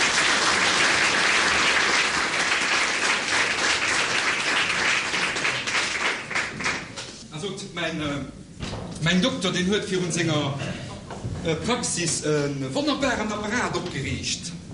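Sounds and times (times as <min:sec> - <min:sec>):
large crowd applauding: 0:00.0 - 0:07.1
speech: 0:07.8 - 0:08.4, 0:09.0 - 0:10.8, 0:11.4 - 0:14.6.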